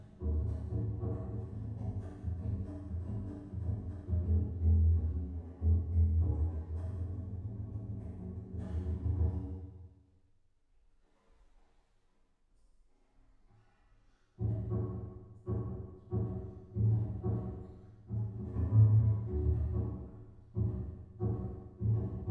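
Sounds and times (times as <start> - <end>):
bass: 0.0 - 9.8, 14.4 - 22.2.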